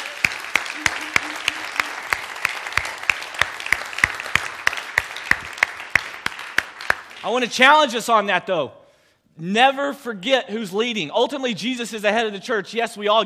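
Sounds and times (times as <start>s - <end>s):
audience applauding: 0.0s - 7.3s
speech: 7.2s - 8.8s, 9.4s - 13.2s.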